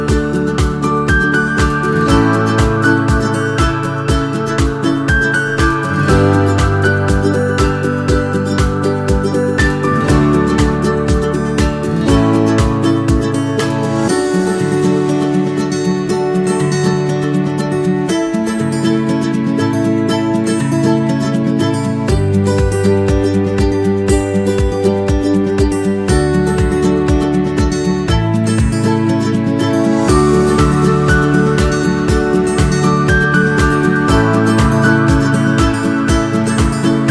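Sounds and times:
acoustic guitar: 0.0 - 37.1.

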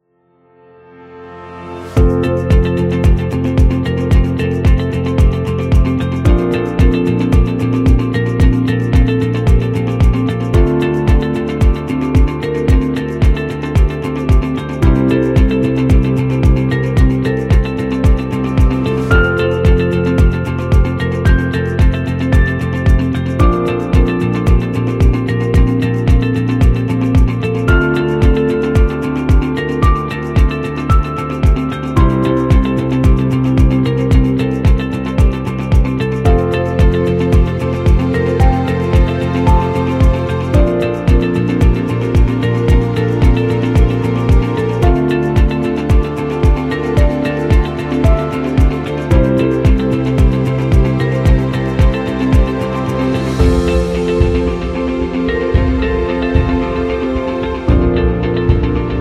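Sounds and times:
calm corporate music: 0.0 - 58.9.

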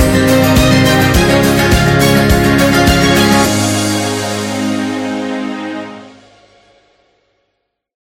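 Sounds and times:
acoustic guitar: 0.0 - 6.3.

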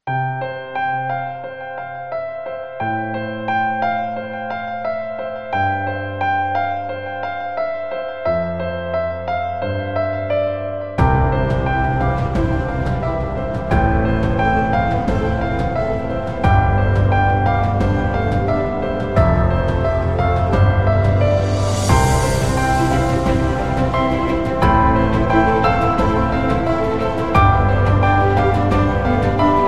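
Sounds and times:
wedding piano music: 0.0 - 29.6.

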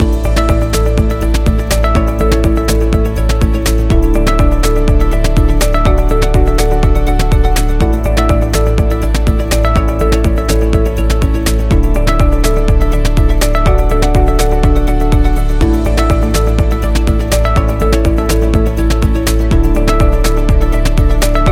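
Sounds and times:
tech music loop: 0.0 - 21.5.

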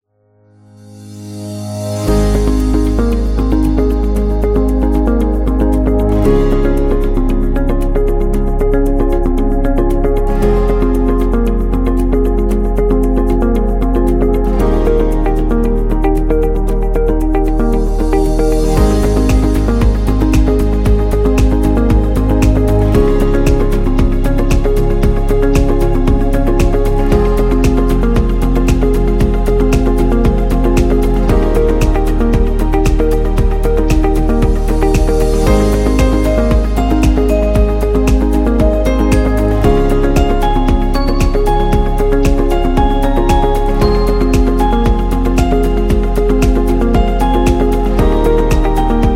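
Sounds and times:
real estate corporate music: 0.4 - 49.1.

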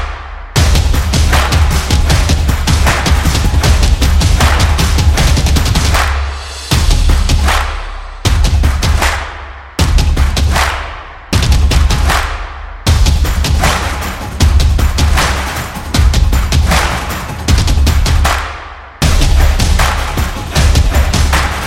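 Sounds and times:
bass beat: 0.0 - 21.6.

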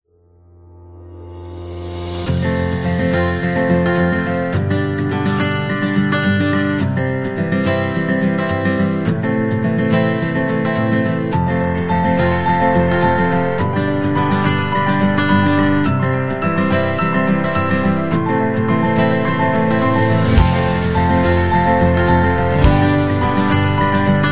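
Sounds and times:
positive guitar: 0.5 - 24.3.

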